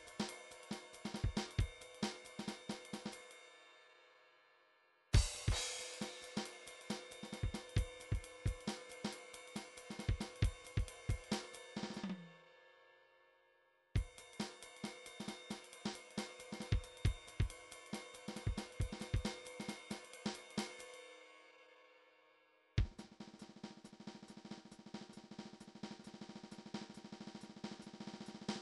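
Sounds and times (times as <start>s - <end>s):
midi drums: 0.0s - 3.1s, 5.2s - 12.3s, 15.2s - 17.6s, 18.3s - 20.4s, 22.8s - 28.6s.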